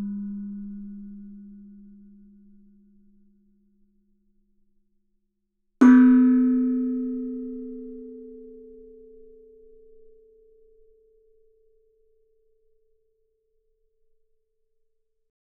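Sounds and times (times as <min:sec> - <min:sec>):
gamelan: 0:05.8 - 0:09.0.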